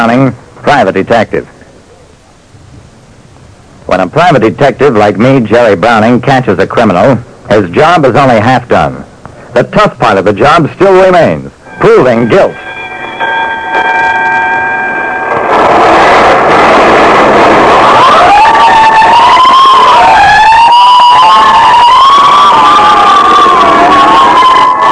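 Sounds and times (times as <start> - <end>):
speech: 0.1 - 1.5, 3.9 - 12.6
fire engine sirens at night: 11.7 - 24.9.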